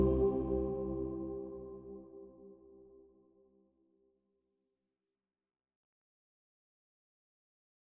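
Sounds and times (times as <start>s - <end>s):
choir singing: 0.0s - 2.2s.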